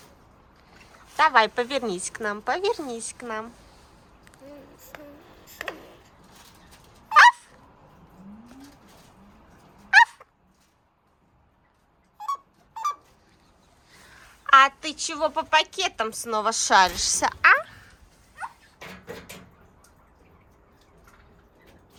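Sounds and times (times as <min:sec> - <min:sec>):
speech: 0:01.2 - 0:03.6, 0:14.9 - 0:17.5
Eurasian jay mimicry calls: 0:12.2 - 0:13.0.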